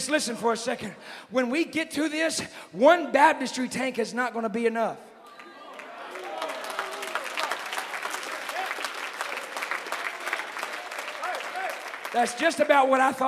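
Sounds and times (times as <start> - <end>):
speech: 0.0 - 5.1, 12.2 - 13.2
few audience hand claps: 5.7 - 12.7.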